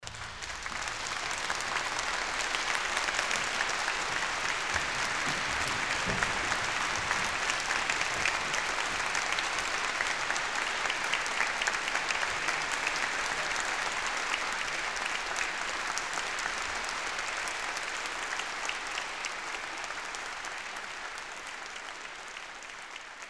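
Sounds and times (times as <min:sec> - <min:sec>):
applause: 0:00.0 - 0:23.2.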